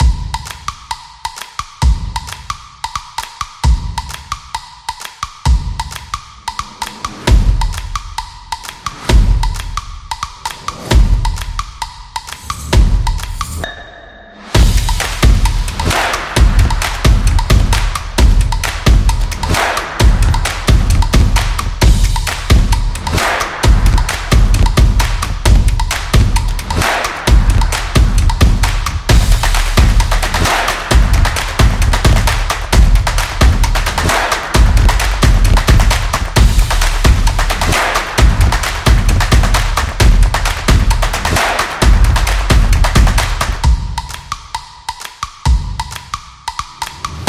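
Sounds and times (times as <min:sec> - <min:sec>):
background beat: 0:00.0 - 0:47.2.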